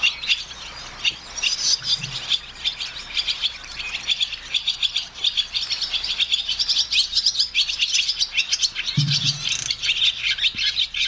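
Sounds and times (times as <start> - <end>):
barn swallows chattering: 0.0 - 11.0
faint low thumps: 9.0 - 9.9.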